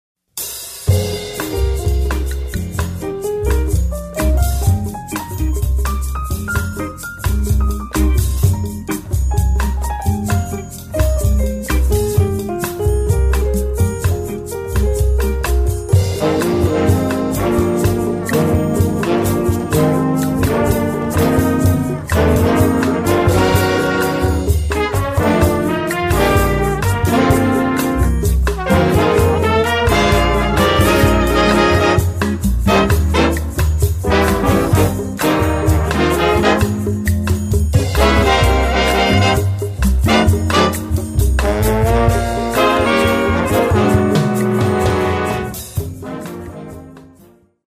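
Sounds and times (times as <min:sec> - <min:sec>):
bossa nova music: 0:00.4 - 0:47.7.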